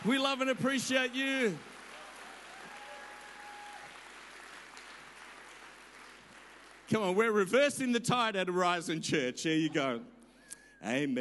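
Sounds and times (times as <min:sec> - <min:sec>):
speech: 0:00.0 - 0:01.7, 0:06.9 - 0:10.1, 0:10.8 - 0:11.1
audience applause: 0:00.0 - 0:07.0.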